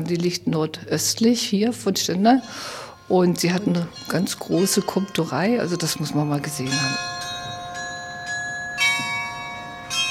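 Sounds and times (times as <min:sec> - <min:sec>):
speech: 0:00.0 - 0:07.2
carillon bells chiming in a town: 0:02.1 - 0:10.0.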